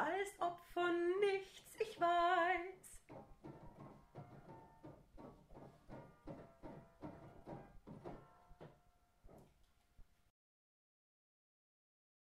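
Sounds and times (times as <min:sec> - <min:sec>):
singing voice: 0:00.0 - 0:03.1.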